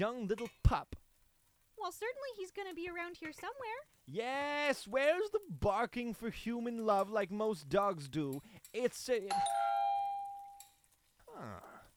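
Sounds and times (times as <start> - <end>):
speech: 0.0 - 1.0, 1.8 - 9.7, 11.4 - 11.7
doorbell chime: 9.3 - 10.8.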